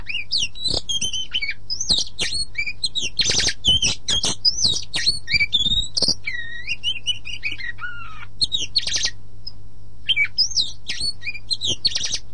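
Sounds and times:
Oriental magpie-robin song of whistled notes, slurs and sharp chips: 0.0 - 9.2, 10.1 - 12.3.

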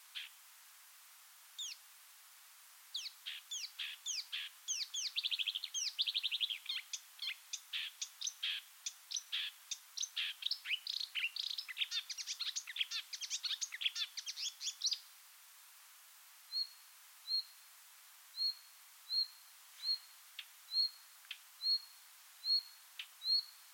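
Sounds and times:
marsh warbler song: 1.6 - 1.8, 2.9 - 15.1, 18.4 - 21.0, 21.6 - 23.7.

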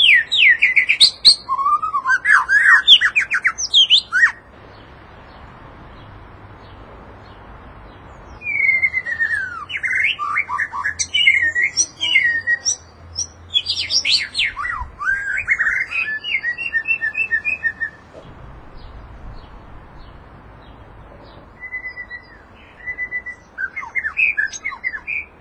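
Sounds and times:
white-rumped shama song with whistled slurs and sharp chips: 0.0 - 4.4, 8.4 - 18.1, 21.5 - 25.3.

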